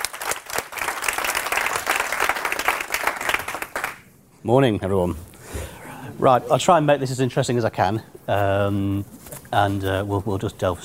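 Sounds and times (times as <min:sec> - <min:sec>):
audience applauding: 0:00.0 - 0:04.1
speech: 0:04.4 - 0:05.6, 0:06.2 - 0:10.8.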